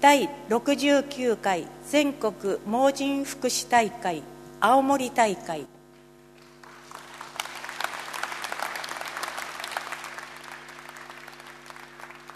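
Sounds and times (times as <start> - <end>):
speech: 0.0 - 5.8
audience clapping: 6.4 - 12.3.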